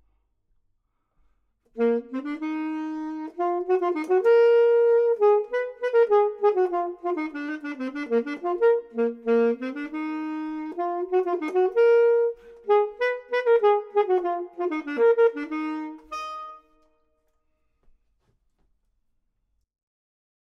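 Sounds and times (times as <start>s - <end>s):
saxophone: 1.7s - 17.0s
clarinet: 1.7s - 17.1s.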